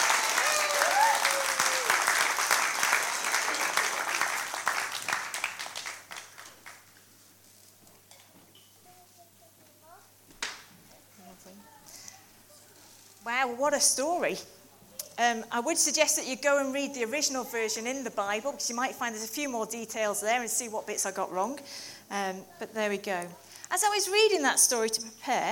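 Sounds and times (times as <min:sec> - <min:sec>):
audience applause: 0:00.0 - 0:07.0
speech: 0:13.5 - 0:14.5, 0:15.2 - 0:25.4.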